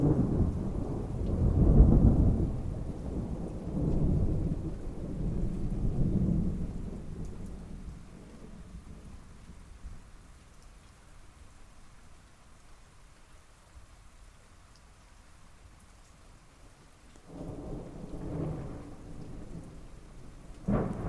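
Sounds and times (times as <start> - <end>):
thunder: 0.0 - 9.1, 17.3 - 21.0.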